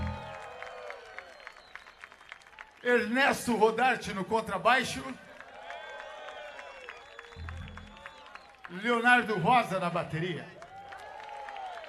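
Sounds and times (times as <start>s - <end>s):
faint concert audience applause for the keyboard player: 0.0s - 11.8s
speech: 2.8s - 5.2s, 8.8s - 10.6s
fading tone: 7.4s - 8.1s.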